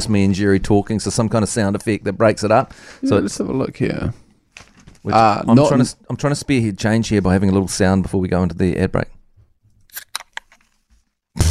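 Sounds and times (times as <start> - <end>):
speech: 0.0 - 4.2, 5.0 - 9.2
sharp metallic clicks and hissy snaps: 9.9 - 10.7.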